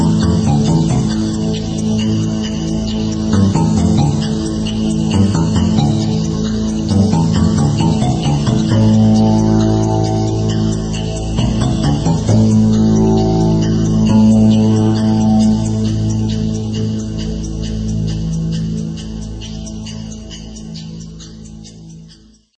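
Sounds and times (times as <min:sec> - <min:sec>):
tense ambience: 0:00.0 - 0:22.0.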